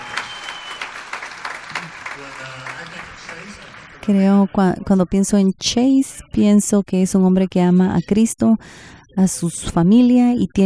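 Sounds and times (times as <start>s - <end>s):
audience applause: 0.0s - 4.2s
speech: 2.2s - 10.6s.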